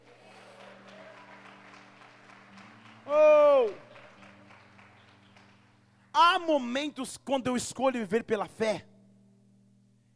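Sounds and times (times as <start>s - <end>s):
audience applauding: 0.0s - 6.1s
speech: 6.4s - 8.9s.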